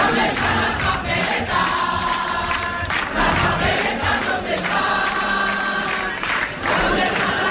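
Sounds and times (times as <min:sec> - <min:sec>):
crowd singing a song in Madrid: 0:00.0 - 0:07.4.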